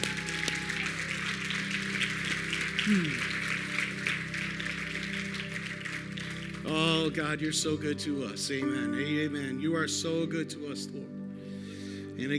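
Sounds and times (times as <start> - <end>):
audience applause: 0.0 - 7.2
speech: 2.9 - 3.3, 7.1 - 11.2, 12.2 - 12.3.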